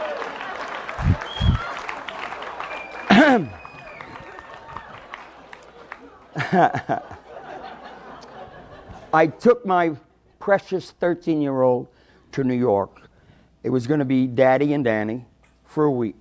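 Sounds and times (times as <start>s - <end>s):
audience of women applauding: 0.0s - 6.5s
laughter: 0.0s - 9.1s
speech: 3.2s - 3.6s, 6.5s - 7.2s, 9.1s - 16.2s.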